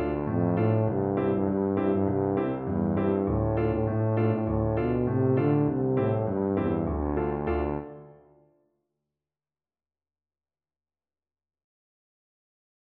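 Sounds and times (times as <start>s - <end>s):
tuba melody: 0.0s - 8.4s.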